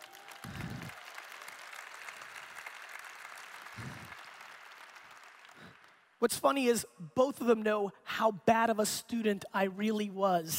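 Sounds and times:
crowd applause: 0:00.0 - 0:06.0
speech: 0:06.2 - 0:10.5.

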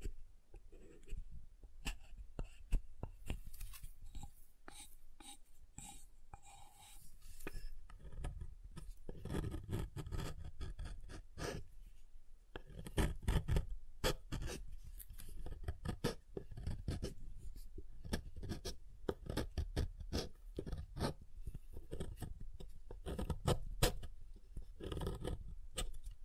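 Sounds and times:
soap tapped and carved: 0:00.0 - 0:06.6, 0:07.4 - 0:11.7, 0:12.5 - 0:26.2
soft rubbing: 0:03.3 - 0:07.8.

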